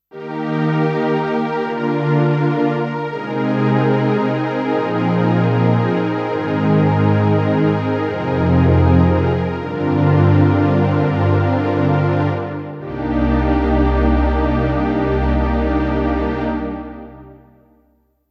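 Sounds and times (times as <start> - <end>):
Korg D1 strings sound: 0.2 - 17.5.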